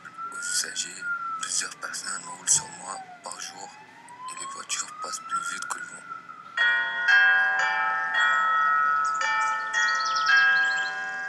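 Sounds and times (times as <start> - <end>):
speech: 0.6 - 6.8
church bells ringing: 6.6 - 11.2.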